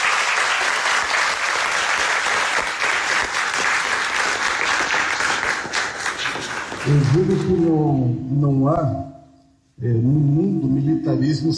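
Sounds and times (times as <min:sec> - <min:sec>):
audience applause: 0:00.0 - 0:07.7
speech: 0:06.9 - 0:09.1, 0:09.8 - 0:11.5.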